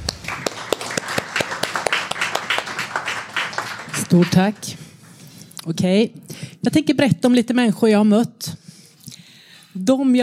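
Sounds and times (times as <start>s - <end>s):
audience applause: 0.0s - 4.8s
speech: 4.1s - 4.8s, 5.6s - 8.5s, 9.8s - 10.2s.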